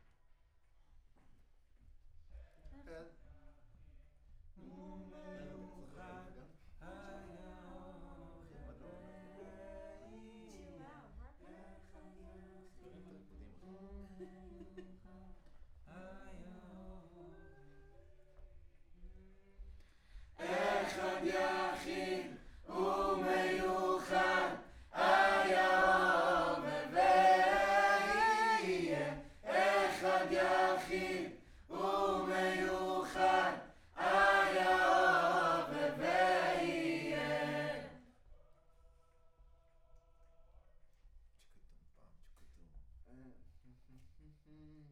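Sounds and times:
choir singing: 20.4s - 38.1s.

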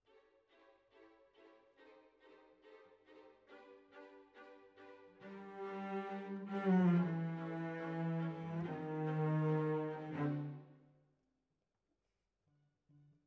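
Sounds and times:
cellos playing: 3.2s - 10.7s.

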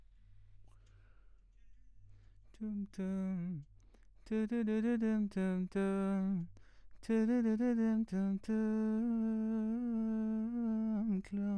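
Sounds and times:
vocals: 2.4s - 11.5s.

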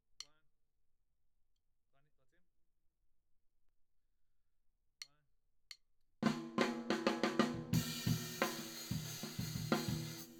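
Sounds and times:
tom drum: 6.2s - 10.3s.

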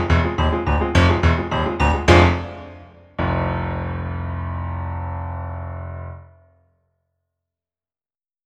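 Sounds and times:
mountain ska music: 0.0s - 4.7s.

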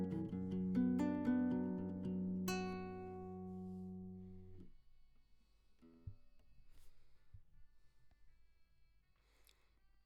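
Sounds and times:
classical guitar: 0.0s - 4.7s.

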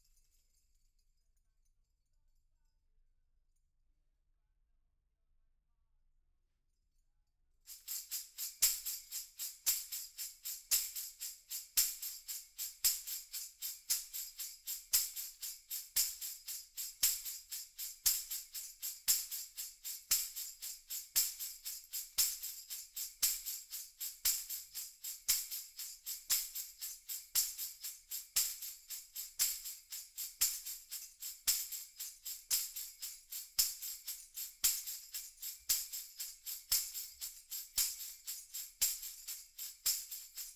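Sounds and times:
percussion recorded with overhead microphones: 0.0s - 1.2s, 7.7s - 40.5s.

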